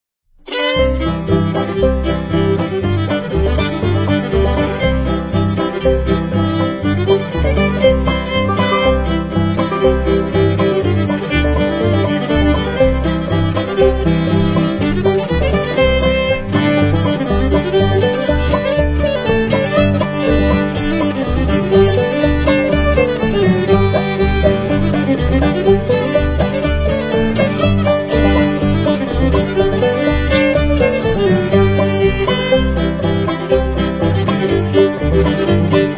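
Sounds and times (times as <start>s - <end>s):
fiddle playing a barn dance polka: 0.4s - 35.9s.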